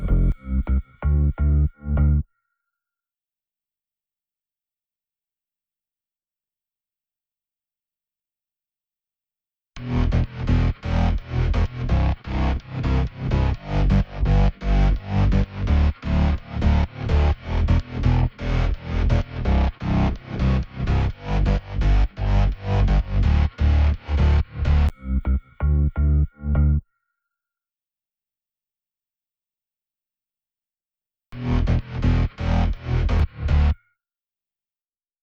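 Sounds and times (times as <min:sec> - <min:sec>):
bass: 0:00.0 - 0:02.3, 0:09.8 - 0:26.8, 0:31.4 - 0:33.8.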